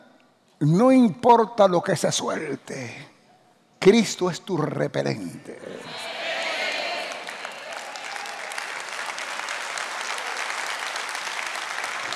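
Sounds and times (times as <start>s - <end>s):
speech: 0.6s - 3.1s, 3.8s - 6.0s
audience applause: 6.5s - 12.1s.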